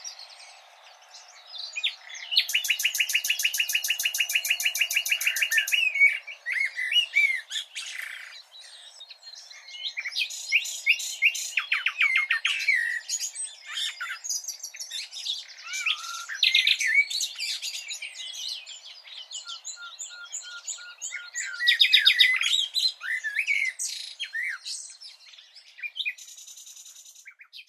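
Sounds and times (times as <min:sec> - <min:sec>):
common nightingale song: 0:00.0 - 0:27.6.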